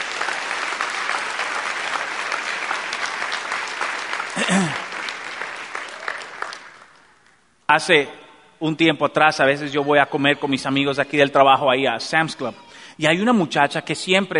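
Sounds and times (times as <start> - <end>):
audience applauding: 0.0 - 7.4
speech: 4.4 - 4.8, 7.7 - 14.3.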